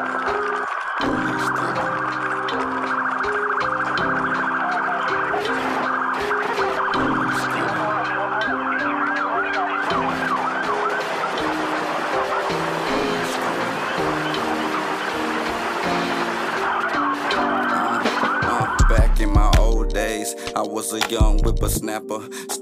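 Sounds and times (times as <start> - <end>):
police car siren wailing: 0.0 - 20.2
steady musical backing: 0.0 - 22.6
heavy low bass thumps: 18.6 - 20.1
speech: 20.8 - 22.6.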